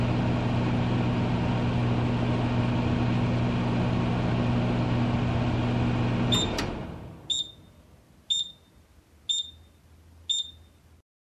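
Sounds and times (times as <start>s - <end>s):
microwave running: 0.0s - 8.6s.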